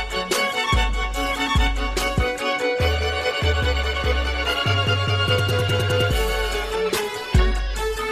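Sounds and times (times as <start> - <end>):
iPhone 7 ringtone with violin and beat: 0.0 - 8.1.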